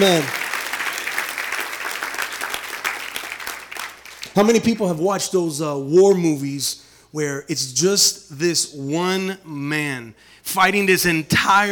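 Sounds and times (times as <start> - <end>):
speech: 0.0 - 0.4, 4.4 - 11.7
audience clapping: 0.0 - 4.8.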